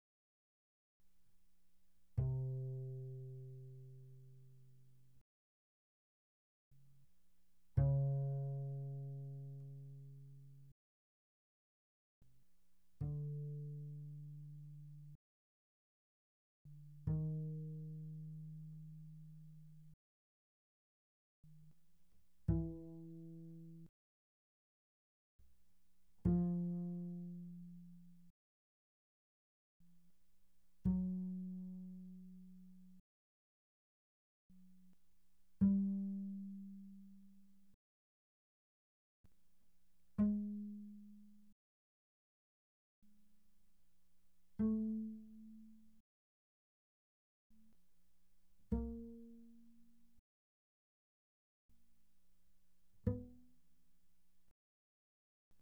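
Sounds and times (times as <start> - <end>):
double bass pizzicato mezzo forte on the G string: 2.2 - 5.0, 7.8 - 10.7, 13.0 - 15.2, 16.7 - 20.0, 22.5 - 23.9, 26.2 - 28.3, 30.8 - 33.0, 35.6 - 37.6, 40.2 - 41.5, 44.6 - 46.0, 48.7 - 50.2, 53.0 - 53.5.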